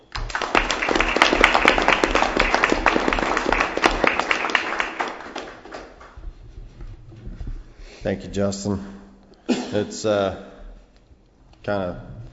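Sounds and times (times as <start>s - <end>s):
round of applause: 0.0s - 6.2s
speech: 8.0s - 9.0s, 9.7s - 10.5s, 11.6s - 12.1s.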